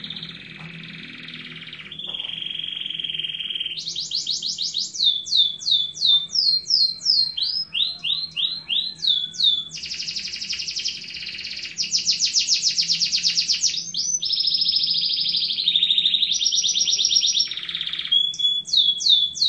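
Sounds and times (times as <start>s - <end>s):
Atlantic Canary trilling song: 0.0s - 19.4s.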